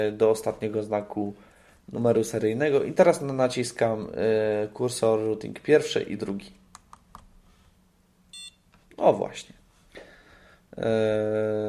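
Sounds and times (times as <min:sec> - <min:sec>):
speech: 0:00.0 - 0:06.6, 0:09.0 - 0:09.6, 0:10.8 - 0:11.6
low hum: 0:00.0 - 0:11.6
short electronic beep from a device: 0:08.3 - 0:08.6.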